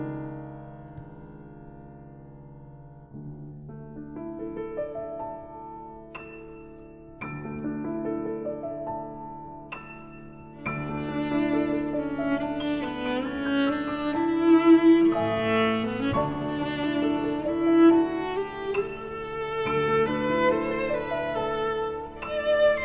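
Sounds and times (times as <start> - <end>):
cello and piano sonata: 0.0 - 22.8.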